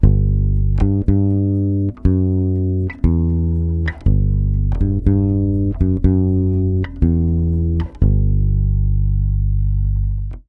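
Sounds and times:
Brazilian bossa bass line in G minor 7: 0:00.0 - 0:10.4.

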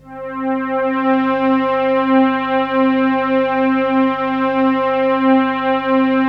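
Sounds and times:
deep synth pad on C4: 0:00.0 - 0:06.2.

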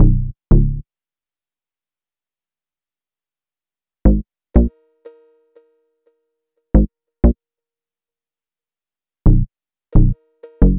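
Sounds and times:
hip-hop bass: 0:00.0 - 0:00.8, 0:09.3 - 0:10.7.

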